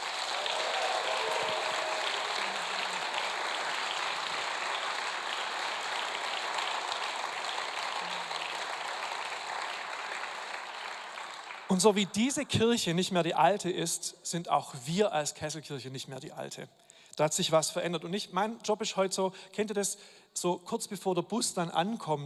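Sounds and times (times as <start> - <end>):
audience applause: 0.0 - 12.1
speech: 11.7 - 22.2.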